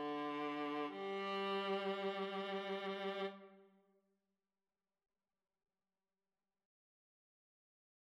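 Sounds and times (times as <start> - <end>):
violin and viola duet: 0.0 - 3.6.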